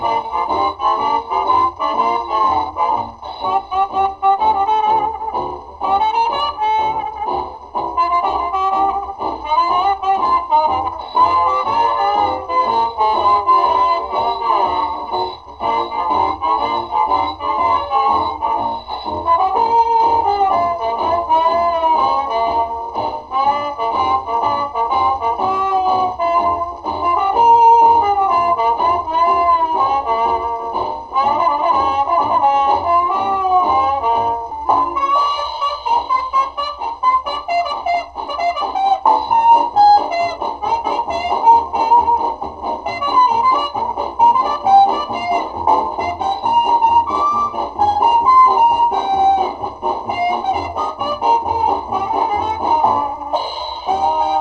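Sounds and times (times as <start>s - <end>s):
music: 0.0s - 54.4s.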